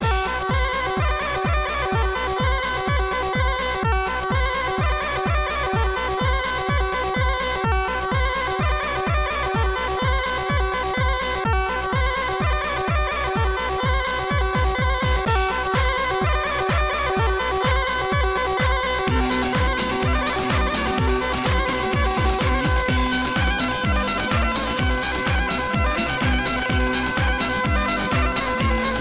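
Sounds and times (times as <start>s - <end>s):
hot Balkan style music: 0.0s - 29.0s.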